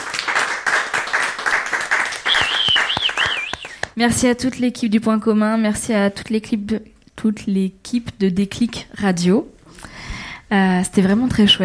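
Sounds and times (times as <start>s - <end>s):
audience applause: 0.0s - 3.9s
high whistle: 2.2s - 3.9s
speech: 4.0s - 9.9s, 10.5s - 11.6s.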